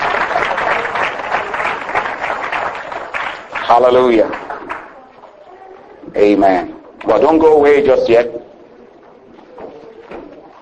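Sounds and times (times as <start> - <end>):
church audience applause: 0.0 - 5.0
speech: 3.7 - 4.5, 6.2 - 8.5.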